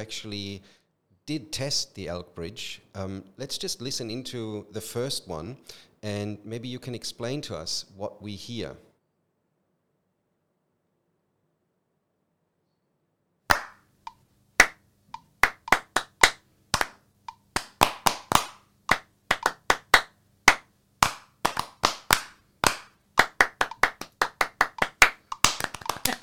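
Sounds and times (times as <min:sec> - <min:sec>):
speech: 0:00.0 - 0:08.9
three people clapping: 0:13.5 - 0:13.8, 0:14.6 - 0:26.2
metronome: 0:17.3 - 0:17.5.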